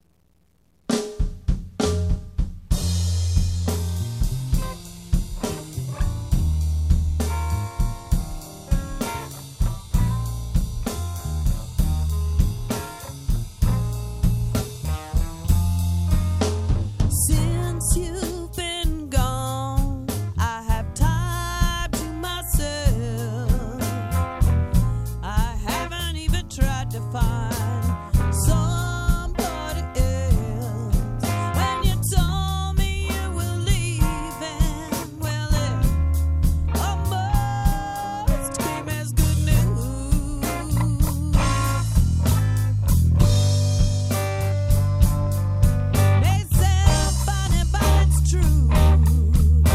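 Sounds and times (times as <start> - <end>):
blues music: 0.3 - 49.7.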